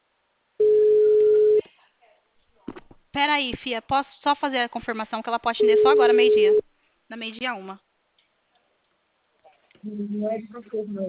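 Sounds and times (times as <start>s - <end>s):
telephone ringback tone on call: 0.6s - 1.6s
speech: 3.2s - 7.8s, 9.8s - 11.0s.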